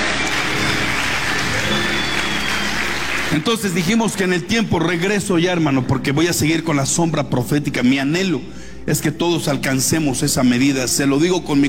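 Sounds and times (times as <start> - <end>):
applause: 0.0 - 4.4
speech: 3.3 - 11.6.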